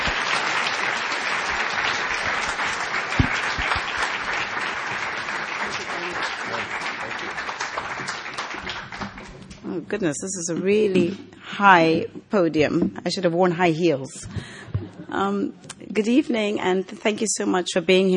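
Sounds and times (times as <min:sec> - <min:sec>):
audience applause welcoming a speaker to the podium: 0:00.0 - 0:09.6
speech: 0:09.9 - 0:14.5, 0:15.1 - 0:18.1.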